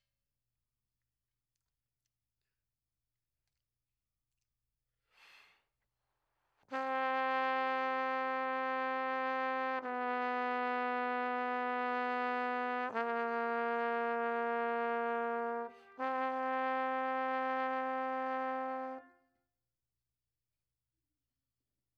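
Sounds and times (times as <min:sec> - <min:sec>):
trombone: 0:06.7 - 0:19.1.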